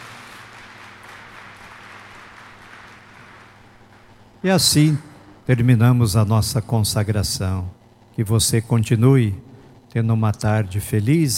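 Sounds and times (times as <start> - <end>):
audience applause: 0.0 - 4.4
speech: 4.4 - 11.3.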